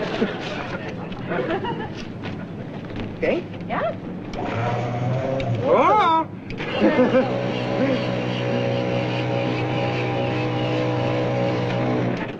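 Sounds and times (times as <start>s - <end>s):
laughter: 0.0s - 2.8s, 6.6s - 9.8s
speech: 3.2s - 5.0s, 6.8s - 8.2s
car engine starting: 4.3s - 5.8s, 6.5s - 12.3s.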